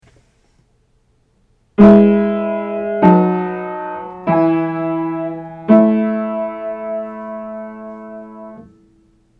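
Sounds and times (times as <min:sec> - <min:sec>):
seventh chords for aural training: 0:01.8 - 0:08.8.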